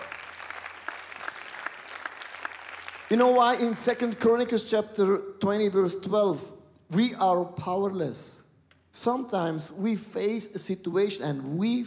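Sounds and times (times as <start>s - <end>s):
audience applause: 0.0s - 3.2s
speech: 3.1s - 8.4s, 9.0s - 11.8s.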